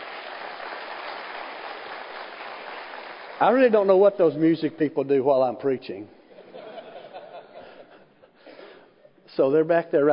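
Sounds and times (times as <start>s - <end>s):
audience hand clapping: 0.0s - 3.8s
speech: 3.4s - 6.2s, 9.4s - 10.1s
laughter: 6.3s - 8.3s.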